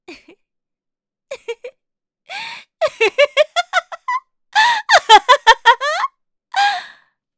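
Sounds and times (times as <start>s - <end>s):
person laughing maniacally: 2.3s - 6.9s.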